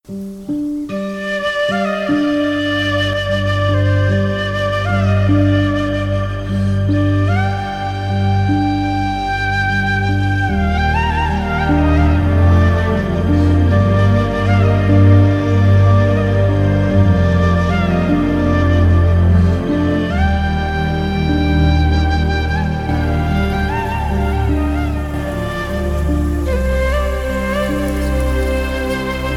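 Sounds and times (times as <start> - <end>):
sad emotional music: 0.1 - 29.3.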